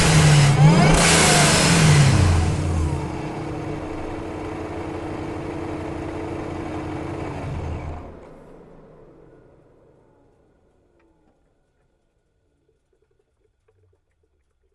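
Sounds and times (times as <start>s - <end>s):
2011 Dodge SRT8 driving fast, recorded onboard: 0.0s - 11.3s
2011 Dodge SRT8 engine starting, recorded onboard: 0.0s - 13.0s.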